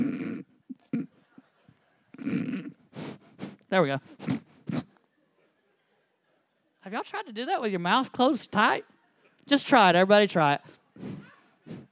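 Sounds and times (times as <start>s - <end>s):
air blown forcefully out through the nose: 2.2s - 4.9s
speech: 3.7s - 4.4s, 6.9s - 11.1s.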